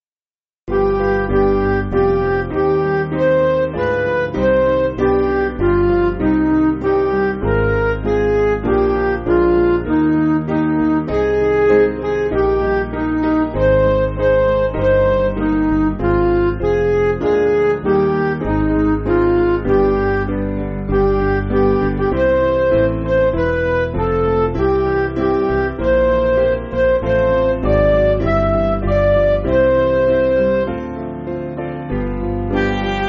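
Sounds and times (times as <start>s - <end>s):
MIDI music: 0.7s - 33.0s.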